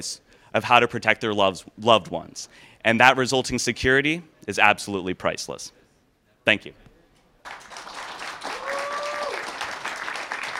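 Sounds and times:
speech: 0.0s - 5.8s, 6.4s - 7.6s
audience applause: 7.4s - 10.5s.

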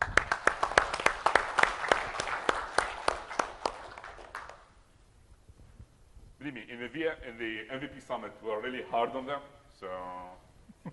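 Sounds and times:
audience applause: 0.0s - 4.7s
speech: 7.1s - 10.4s.

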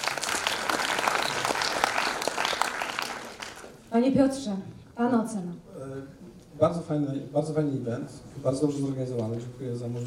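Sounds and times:
audience applause: 0.0s - 3.8s
speech: 3.9s - 10.0s.

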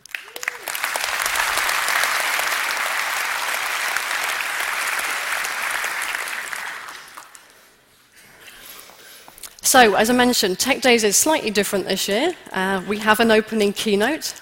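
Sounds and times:
audience round of applause: 0.0s - 7.6s
speech: 9.7s - 14.4s.

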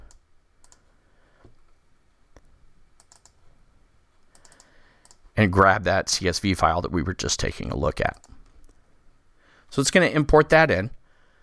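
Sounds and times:
computer mouse clicks: 0.0s - 1.6s, 2.4s - 3.4s, 4.2s - 5.2s
speech: 5.4s - 8.3s, 9.8s - 11.0s.

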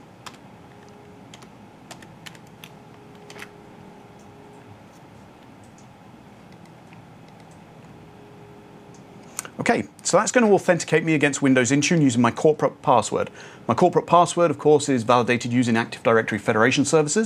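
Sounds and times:
typing on a computer keyboard: 0.2s - 3.5s
speech: 9.6s - 17.2s.

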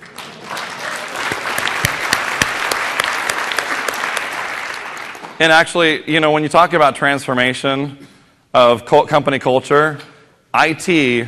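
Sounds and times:
audience applause: 0.0s - 5.4s
speech: 5.4s - 11.2s.

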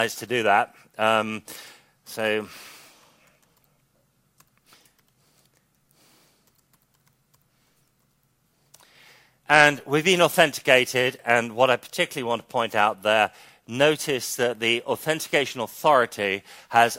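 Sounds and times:
speech: 0.0s - 2.8s, 9.5s - 16.9s
typing authentication details on a computer keyboard: 3.2s - 8.9s.

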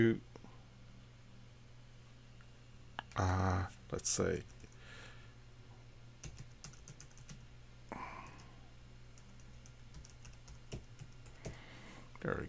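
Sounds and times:
speech: 0.0s - 0.3s, 3.2s - 4.6s, 12.2s - 12.4s
typing on a computer keyboard entering an email subject line: 4.4s - 4.8s, 6.2s - 7.5s, 9.1s - 11.6s.

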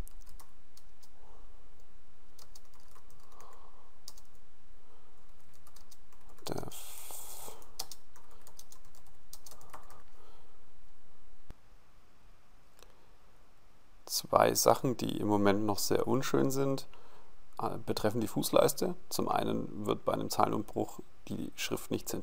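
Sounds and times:
typing on a computer keyboard: 0.0s - 1.1s, 2.4s - 4.4s, 5.4s - 6.5s, 7.7s - 10.0s
speech: 14.3s - 17.0s, 17.6s - 22.2s.

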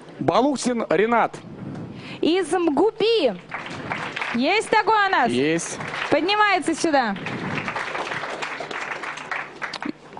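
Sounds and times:
speech: 0.2s - 7.4s
audience applause as a university student is called on stage: 3.4s - 10.0s.

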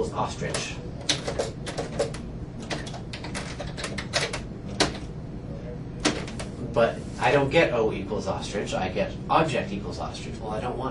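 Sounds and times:
speech: 0.2s - 0.9s, 6.8s - 10.8s
typing code on a computer keyboard: 1.0s - 5.1s.

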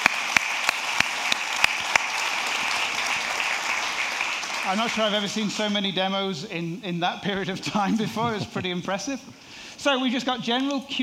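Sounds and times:
audience round of applause: 0.0s - 5.8s
speech: 4.7s - 11.0s
laughter: 7.5s - 9.3s.

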